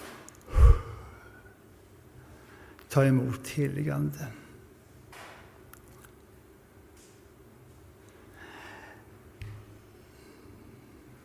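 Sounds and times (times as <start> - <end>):
soft whooshing exhale: 0.4 - 1.4
speech: 2.9 - 4.4.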